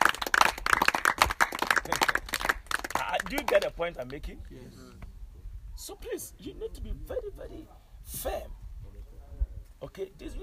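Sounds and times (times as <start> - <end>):
audience clapping: 0.0 - 4.2
speech: 1.9 - 2.1, 3.3 - 5.0, 5.8 - 8.6, 9.8 - 10.4.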